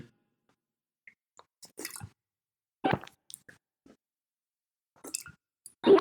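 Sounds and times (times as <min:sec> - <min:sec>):
exaggerated loud gulping of water: 0:01.7 - 0:02.1, 0:02.9 - 0:03.4.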